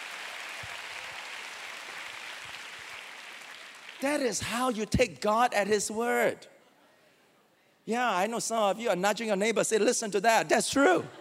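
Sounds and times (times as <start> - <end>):
crowd clapping: 0.0 - 4.3
speech: 4.0 - 6.5, 7.9 - 11.2.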